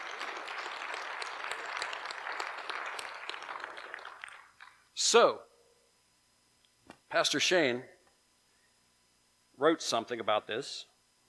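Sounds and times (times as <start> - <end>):
audience clapping: 0.0 - 4.8
speech: 5.0 - 5.5, 7.1 - 8.0, 9.6 - 10.9.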